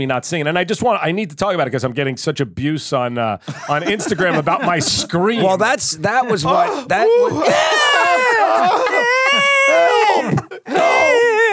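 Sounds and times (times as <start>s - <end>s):
speech: 0.0s - 10.8s
laughter: 3.4s - 11.5s
person imitating a crying infant: 7.1s - 11.5s.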